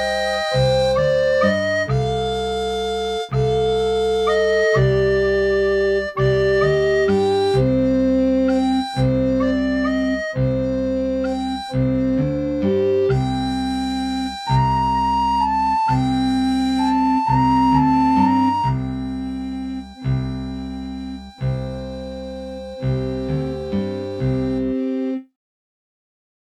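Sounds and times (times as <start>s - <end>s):
flogera playing a sad song: 0.0s - 25.3s.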